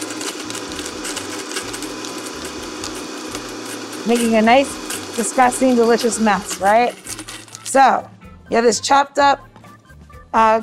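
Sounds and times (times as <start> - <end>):
blender running on medium setting: 0.0 - 8.0
speech: 4.0 - 7.1, 7.7 - 9.5, 10.3 - 10.6.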